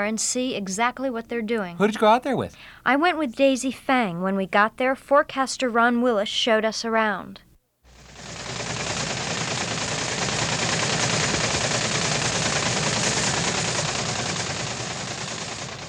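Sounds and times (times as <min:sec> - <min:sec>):
speech: 0:00.0 - 0:07.5
rattle of teletype machines sending weather observations: 0:07.9 - 0:15.8.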